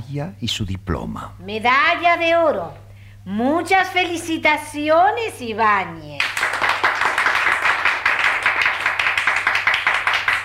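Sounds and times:
speech: 0.1s - 6.3s
half-hearted applause from audience: 6.2s - 10.4s
winner's parents clapping enthusiastically: 6.2s - 10.4s.

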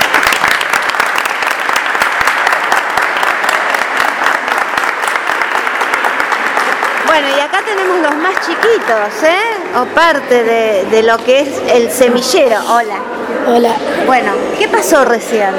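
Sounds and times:
audience applause: 0.0s - 9.2s
speech: 7.2s - 15.5s.

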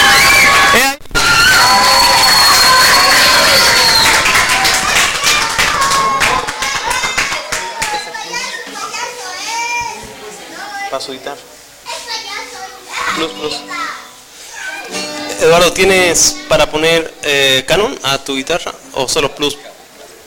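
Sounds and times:
audience applause: 0.0s - 8.1s
speech: 11.0s - 11.5s, 13.2s - 13.8s, 14.9s - 19.7s.

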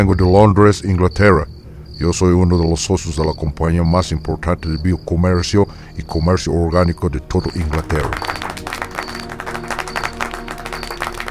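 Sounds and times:
speech: 0.0s - 8.4s
people applauding: 7.4s - 11.2s.

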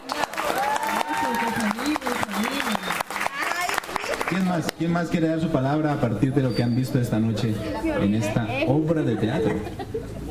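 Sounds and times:
audience applause: 0.0s - 4.7s
speech: 4.3s - 10.0s
laughter: 9.0s - 10.2s.

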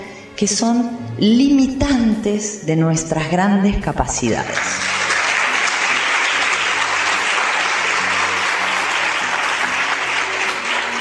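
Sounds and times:
speech: 0.4s - 5.0s
audience applause: 4.6s - 10.9s.

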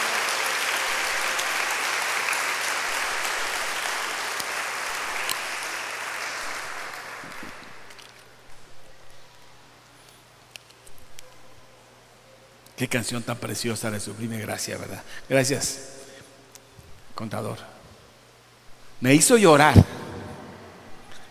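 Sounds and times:
audience applause: 0.0s - 8.1s
speech: 12.8s - 16.0s, 17.2s - 17.7s, 19.0s - 20.0s.

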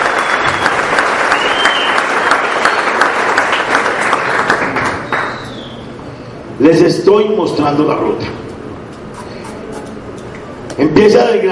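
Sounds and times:
audience applause: 0.0s - 5.7s
speech: 6.6s - 8.5s, 10.8s - 11.5s.

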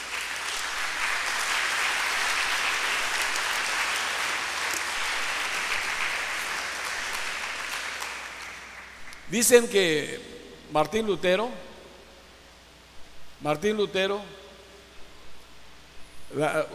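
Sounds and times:
audience applause: 0.0s - 9.3s
speech: 9.3s - 11.7s, 13.4s - 14.4s, 16.3s - 16.7s.

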